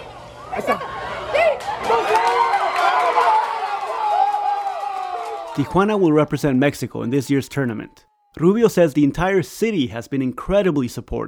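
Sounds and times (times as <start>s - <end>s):
baseball stadium crowd cheering wildly: 0.0s - 8.6s
speech: 5.6s - 11.2s.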